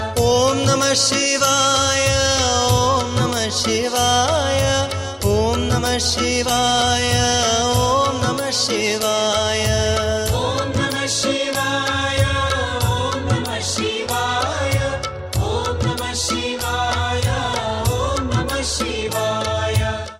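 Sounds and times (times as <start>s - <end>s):
devotional bhajan chant: 0.0s - 20.1s.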